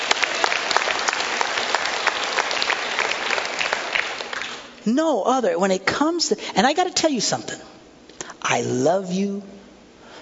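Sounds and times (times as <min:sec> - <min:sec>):
audience clapping: 0:00.0 - 0:04.8
speech: 0:04.8 - 0:07.8, 0:08.5 - 0:09.6.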